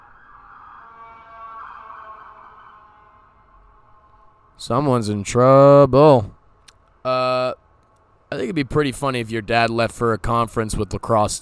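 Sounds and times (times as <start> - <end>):
ambulance siren passing: 0.0 - 4.8
speech: 4.6 - 6.4, 8.4 - 11.3.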